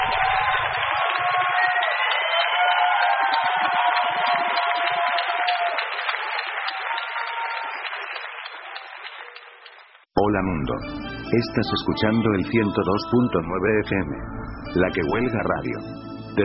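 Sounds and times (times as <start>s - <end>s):
audience applause: 0.0s - 10.1s
speech: 10.4s - 16.4s.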